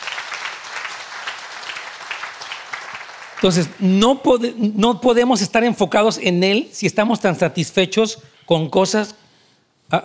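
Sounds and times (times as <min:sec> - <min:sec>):
audience applause: 0:00.0 - 0:03.7
speech: 0:03.4 - 0:09.2, 0:09.9 - 0:10.0.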